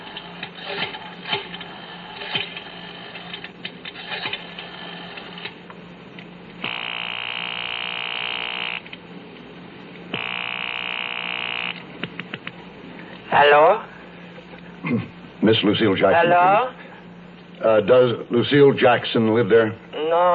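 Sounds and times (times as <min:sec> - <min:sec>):
telephone ringing down the line from a gas-station payphone: 0:06.6 - 0:08.9, 0:10.1 - 0:11.9
speech: 0:13.4 - 0:13.9, 0:14.9 - 0:16.7, 0:17.6 - 0:20.3.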